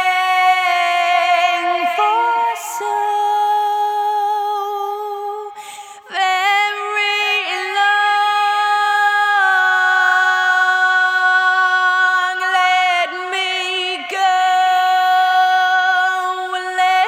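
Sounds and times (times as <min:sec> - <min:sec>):
processed vocals: 0:00.0 - 0:17.0.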